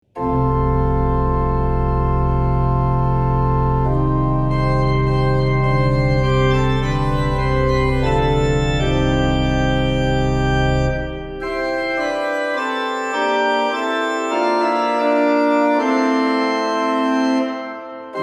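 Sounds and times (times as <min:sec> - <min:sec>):
organ playing: 0:00.2 - 0:18.2.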